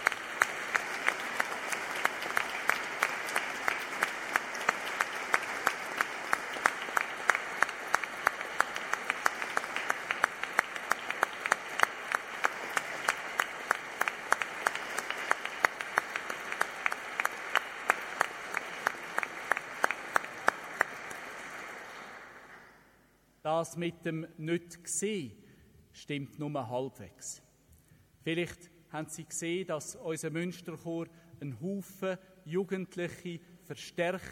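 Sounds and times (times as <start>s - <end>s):
audience applauding in a church: 0.0s - 22.8s
speech: 23.5s - 25.4s, 26.1s - 27.5s, 28.2s - 34.3s.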